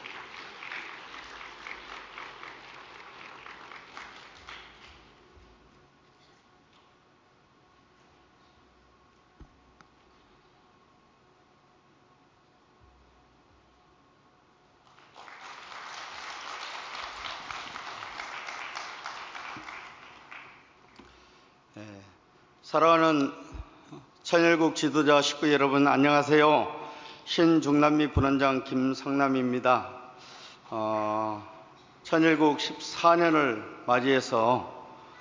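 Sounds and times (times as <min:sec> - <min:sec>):
audience applause: 0:00.0 - 0:05.1, 0:14.9 - 0:20.7
speech: 0:22.7 - 0:23.4, 0:24.3 - 0:30.0, 0:30.7 - 0:31.5, 0:32.1 - 0:34.8.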